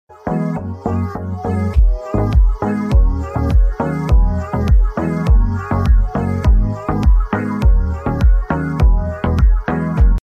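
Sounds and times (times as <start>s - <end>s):
rhythmic ringtone: 0.3s - 10.2s.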